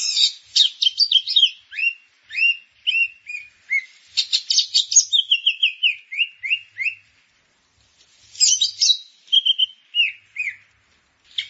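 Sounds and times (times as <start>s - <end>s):
grey-cheeked bulbul singing chattery whistles and high twitters: 0.0s - 7.0s, 8.4s - 10.7s, 11.3s - 11.4s.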